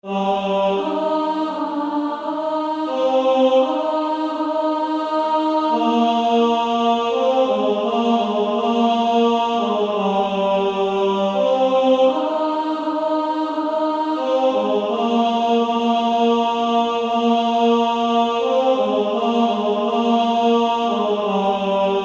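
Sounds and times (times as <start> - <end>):
female choir altos singing: 0.0 - 22.0.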